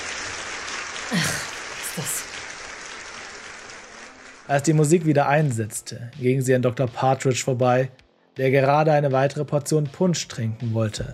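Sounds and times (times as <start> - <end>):
crowd cheering and applause: 0.0 - 5.1
speech: 1.1 - 1.4, 4.5 - 11.1.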